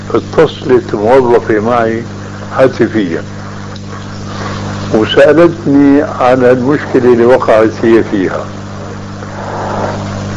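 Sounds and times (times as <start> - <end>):
speech: 0.1 - 3.4, 4.9 - 8.6
car engine passing by: 9.3 - 10.3.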